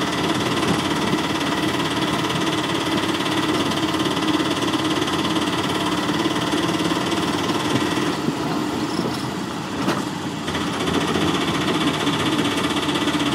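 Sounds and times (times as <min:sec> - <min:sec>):
motorcycle: 0:00.0 - 0:13.3.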